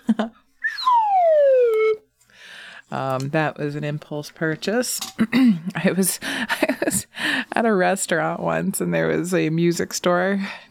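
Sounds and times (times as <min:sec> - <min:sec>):
speech: 0:00.1 - 0:00.4, 0:02.9 - 0:10.6
slide whistle glide: 0:00.6 - 0:02.0.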